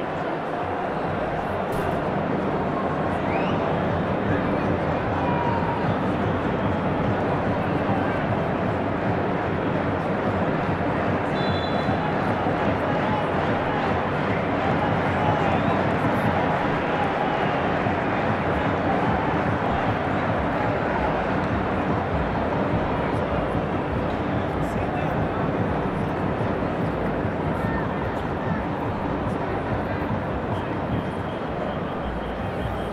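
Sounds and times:
football stadium crowd roar at Wembley: 0:00.0 - 0:32.9.

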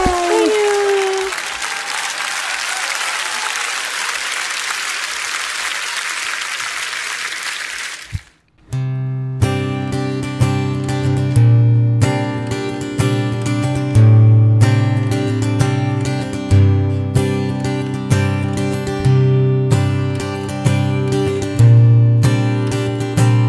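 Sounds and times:
audience applause for a performer at a live show: 0:00.0 - 0:08.4
music: 0:08.6 - 0:23.4.

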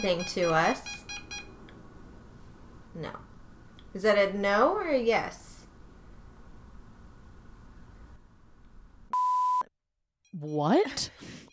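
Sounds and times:
speech: 0:00.0 - 0:01.2, 0:03.0 - 0:03.3, 0:03.9 - 0:05.5, 0:10.3 - 0:11.5
EMF meter beeping: 0:00.0 - 0:01.6, 0:09.1 - 0:09.7.

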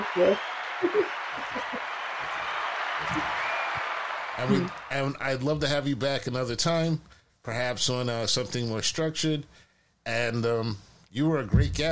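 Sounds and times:
round of applause: 0:00.0 - 0:05.2
speech: 0:00.2 - 0:03.5, 0:04.4 - 0:11.8.

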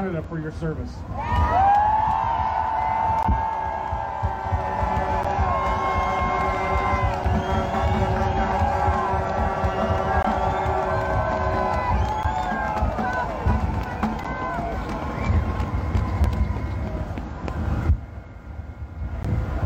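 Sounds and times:
speech: 0:00.2 - 0:01.6
crowd cheering with shouts and whoops: 0:01.1 - 0:19.6
crowd applauding: 0:01.2 - 0:17.7.

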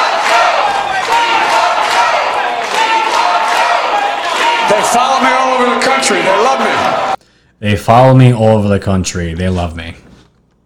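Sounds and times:
crowd screaming a chant in a gymnasium: 0:00.0 - 0:07.2
speech: 0:04.9 - 0:10.0.

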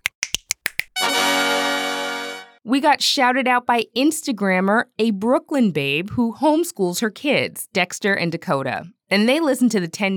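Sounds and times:
finger snaps: 0:00.0 - 0:01.0
bright sustained chord: 0:01.0 - 0:02.6
speech: 0:02.6 - 0:10.1.

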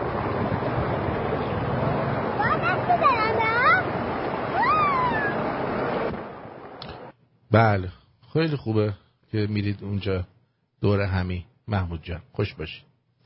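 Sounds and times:
Jajrud river rushing below the Latyan Dam: 0:00.0 - 0:07.1
speech: 0:07.5 - 0:12.9.

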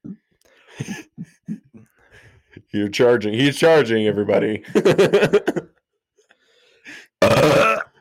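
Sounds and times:
laughter: 0:00.7 - 0:01.9, 0:04.6 - 0:05.7
speech: 0:00.8 - 0:01.1, 0:02.7 - 0:05.7
forced burp attempt with gagging: 0:07.2 - 0:08.0.

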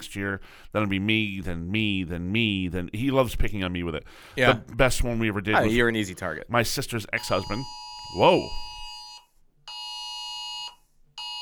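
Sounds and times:
speech: 0:00.1 - 0:08.7
phone emergency alert alarm: 0:07.2 - 0:11.4.

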